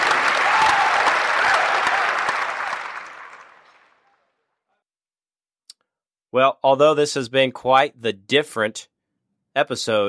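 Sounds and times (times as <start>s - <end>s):
crowd applauding: 0.0s - 4.2s
speech: 6.3s - 8.9s, 9.6s - 10.0s.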